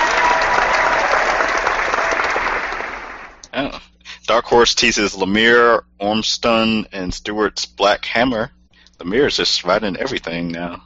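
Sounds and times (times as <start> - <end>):
applause sound effect: 0.0 - 3.4
speech: 3.6 - 10.8.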